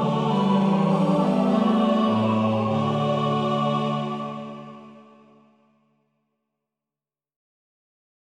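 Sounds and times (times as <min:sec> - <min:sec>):
hymns played on several instruments: 0:00.0 - 0:05.6.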